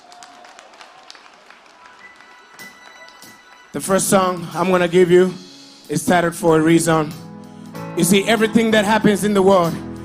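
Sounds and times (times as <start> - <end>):
audience clapping hands: 0.0 - 4.1
speech: 3.8 - 7.2, 8.0 - 9.8.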